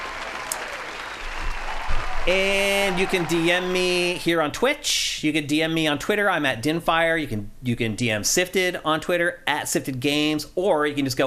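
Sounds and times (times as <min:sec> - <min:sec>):
audience applause: 0:00.0 - 0:04.3
speech: 0:02.3 - 0:11.2.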